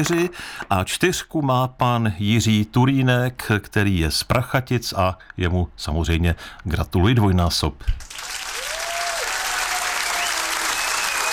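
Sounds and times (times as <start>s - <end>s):
speech: 0.0s - 8.1s
crowd applause: 8.0s - 11.3s.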